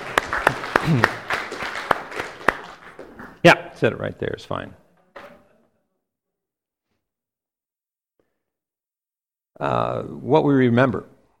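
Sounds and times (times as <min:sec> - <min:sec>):
audience applauding a woman: 0:00.0 - 0:04.1
speech: 0:00.8 - 0:01.2, 0:03.4 - 0:04.8, 0:09.6 - 0:11.1.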